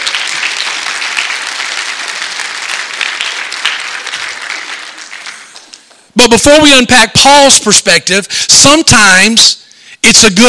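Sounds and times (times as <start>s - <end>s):
audience applauding: 0.0s - 6.1s
speech: 6.2s - 10.4s.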